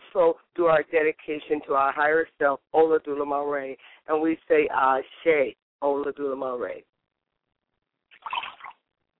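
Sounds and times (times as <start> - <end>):
speech: 0.2 - 6.9
liquid poured out as a libation during a Yoruba Orisha ritual: 8.1 - 8.8.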